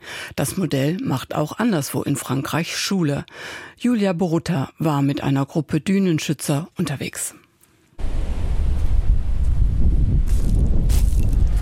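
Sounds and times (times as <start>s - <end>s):
speech: 0.4s - 7.4s
wind on a wide sandy beach: 8.0s - 11.6s.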